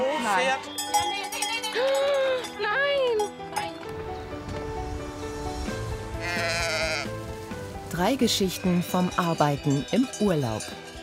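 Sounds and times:
steady outdoor background: 0.0s - 11.0s
speech: 0.3s - 1.1s, 1.7s - 2.1s, 8.0s - 10.8s
flock of sheep bleating: 6.2s - 7.2s.

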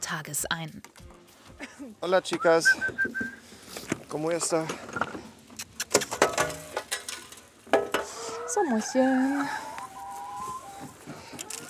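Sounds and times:
speech: 0.1s - 3.3s, 4.1s - 5.2s, 8.6s - 9.6s
hen clucking: 7.8s - 11.6s.

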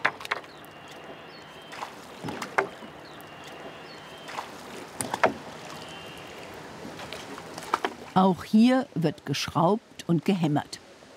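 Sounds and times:
oars rowing a flat-bottomed wooden boat: 0.0s - 8.2s
speech: 8.2s - 10.8s.

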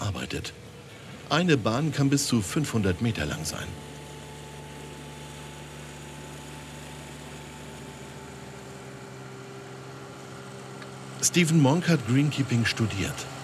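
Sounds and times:
lawnmowers running: 0.0s - 13.4s
speech: 0.4s - 0.7s, 1.3s - 3.9s, 11.2s - 13.4s.

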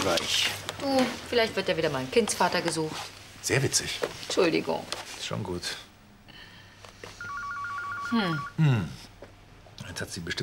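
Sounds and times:
speech: 0.0s - 5.9s, 8.1s - 9.1s, 9.8s - 10.4s
electronic telephone ringing: 7.2s - 8.6s.

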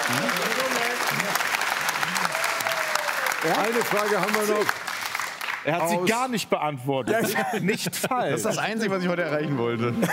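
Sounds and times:
studio audience clapping: 0.0s - 6.2s
speech: 3.4s - 4.8s, 5.6s - 10.1s.

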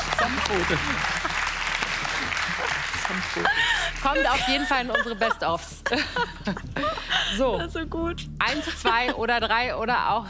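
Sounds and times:
audience applause during a card game on a German show: 0.0s - 4.5s
laughter: 0.0s - 7.5s
speech: 0.5s - 1.4s, 2.5s - 10.2s.

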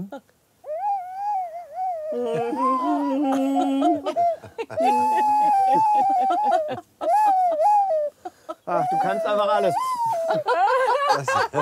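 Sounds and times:
speech: 0.0s - 0.3s, 2.1s - 7.7s, 8.7s - 11.6s
flute playing a slow mournful farewell song: 0.7s - 3.2s, 4.2s - 10.5s
laughter: 2.2s - 9.0s, 9.6s - 11.6s.

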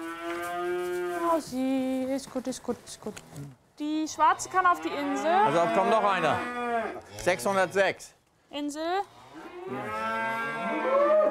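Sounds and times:
Galloway cattle mooing in a stable: 0.0s - 1.3s, 4.2s - 7.9s, 9.4s - 11.2s
speech: 1.3s - 10.6s.

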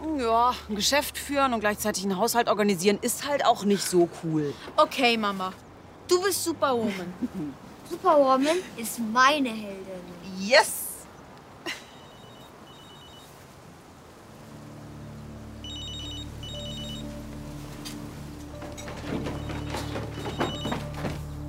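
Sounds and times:
speech: 0.2s - 10.8s
telephone ringing: 11.9s - 13.3s, 15.6s - 17.2s, 19.0s - 21.1s
steady low hum: 14.1s - 21.4s
clattering and knocking: 18.3s - 21.4s.

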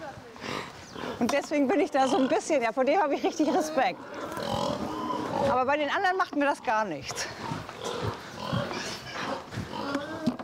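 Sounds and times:
pigs grunting: 0.4s - 2.5s, 3.2s - 5.7s, 7.0s - 10.4s
speech: 1.2s - 4.3s, 5.5s - 7.3s.

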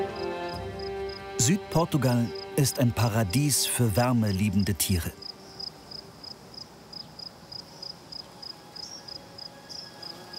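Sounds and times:
crickets chirping: 0.0s - 1.4s, 2.2s - 10.3s
speech: 1.5s - 5.2s
grasshoppers chirping: 2.2s - 10.3s.

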